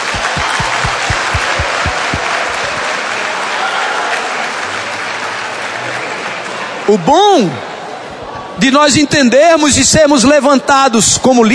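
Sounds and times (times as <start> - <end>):
audience applause: 0.0 - 6.8
speech: 6.9 - 7.6, 8.6 - 11.5.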